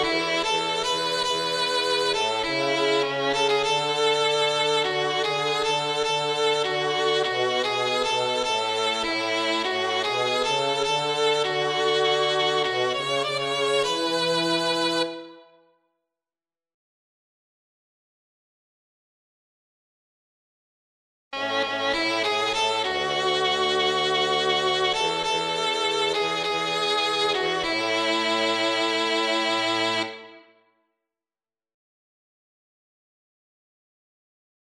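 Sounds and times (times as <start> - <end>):
violin: 0.0 - 15.6, 21.4 - 30.6.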